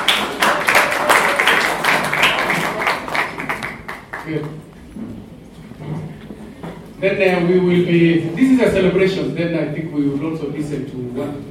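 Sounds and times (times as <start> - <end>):
audience clapping: 0.0 - 4.9
speech: 4.3 - 5.2, 7.0 - 11.4.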